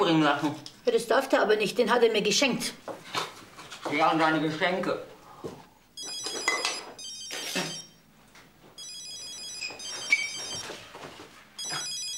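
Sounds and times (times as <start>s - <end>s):
speech: 0.1s - 3.2s, 3.9s - 5.6s
telephone ringing: 6.0s - 8.0s, 8.8s - 10.7s, 11.6s - 12.1s.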